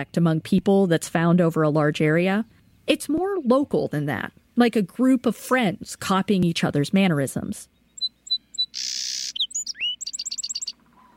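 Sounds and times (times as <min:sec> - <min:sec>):
speech: 0:00.0 - 0:07.7
song sparrow singing: 0:07.6 - 0:11.1.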